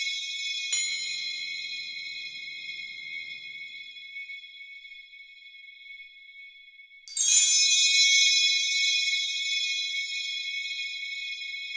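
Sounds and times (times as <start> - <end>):
chimes atmosphere: 0.0 - 4.0, 7.1 - 11.6.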